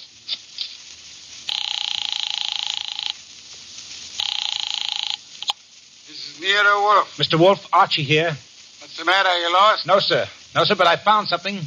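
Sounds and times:
telephone ringing: 1.5s - 3.2s, 4.2s - 5.6s
speech: 6.4s - 11.6s.

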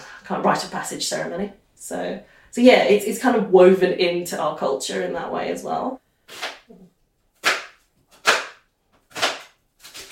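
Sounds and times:
speech: 0.3s - 6.9s
knife chopping food: 7.4s - 10.1s.

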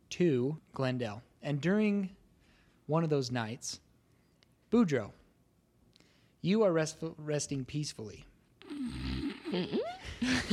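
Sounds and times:
speech: 0.2s - 2.2s, 2.9s - 3.8s, 4.7s - 5.2s, 6.4s - 8.3s, 8.9s - 10.5s
person imitating a snore: 8.6s - 10.0s.

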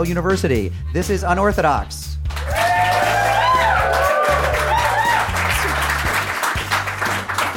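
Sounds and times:
speech: 0.0s - 2.6s
music: 0.0s - 7.5s
audience applause at a live event at Yale University: 2.3s - 7.5s.

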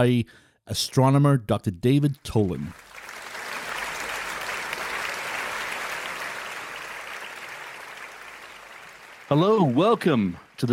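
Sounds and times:
speech: 0.0s - 2.9s, 9.3s - 10.7s
audience applause welcoming an astronomer guest on a talk show: 2.7s - 10.7s.

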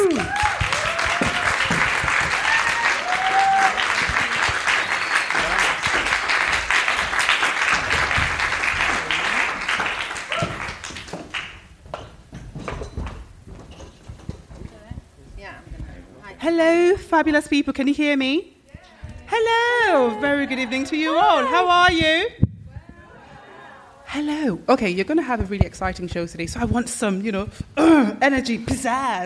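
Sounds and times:
audience applause: 0.0s - 11.6s
speech: 17.1s - 18.5s, 19.4s - 22.4s, 24.2s - 29.2s.

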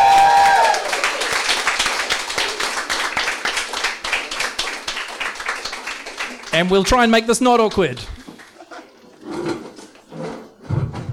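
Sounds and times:
audience applause: 0.0s - 6.9s
speech: 6.6s - 8.2s.

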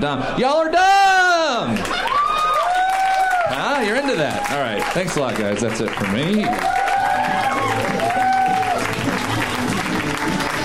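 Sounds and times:
speech: 0.0s - 1.9s, 3.8s - 7.9s
people whooping and shouting: 0.8s - 4.9s, 6.2s - 9.2s
crowd applauding and cheering: 1.6s - 10.6s.

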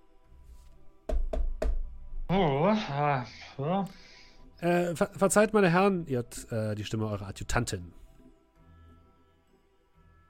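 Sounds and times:
hard knocking on a door in a role-playing game scene: 1.1s - 2.0s
speech: 2.3s - 4.0s, 4.6s - 8.0s.

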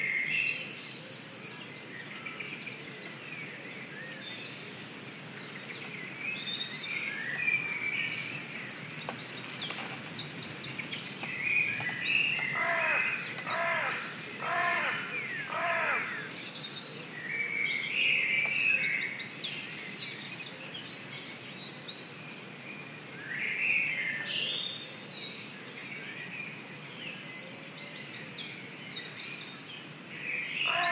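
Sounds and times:
dawn chorus birds singing in Stroud: 0.0s - 30.9s
crow-like caws: 12.5s - 16.3s, 30.7s - 30.9s.

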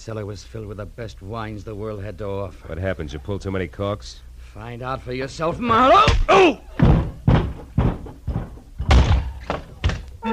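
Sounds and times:
speech: 0.0s - 6.7s
door opening: 6.1s - 10.2s.

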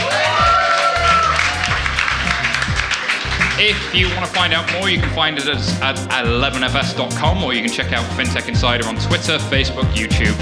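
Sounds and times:
audience cheering: 0.0s - 5.1s
speech: 3.6s - 10.4s.

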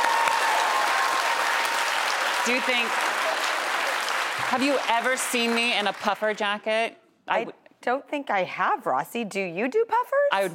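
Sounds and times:
audience clapping: 0.0s - 6.8s
speech: 2.4s - 3.3s, 4.5s - 10.5s.

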